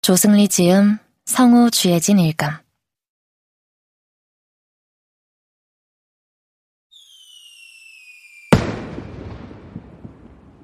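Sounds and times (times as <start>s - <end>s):
speech: 0.0s - 2.6s
firework shell whistling upward: 6.9s - 9.9s
firework burst with crackling fizz: 6.9s - 10.6s.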